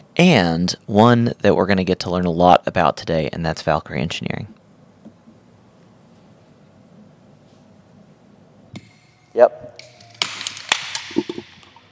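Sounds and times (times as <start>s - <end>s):
speech: 0.2s - 4.6s, 9.4s - 9.8s, 11.1s - 11.5s
beer cans cracked open: 9.8s - 11.9s.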